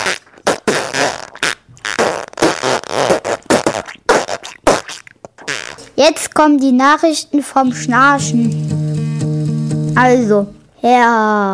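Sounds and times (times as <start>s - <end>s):
farting: 0.0s - 6.0s
speech: 6.0s - 8.7s, 10.0s - 11.5s.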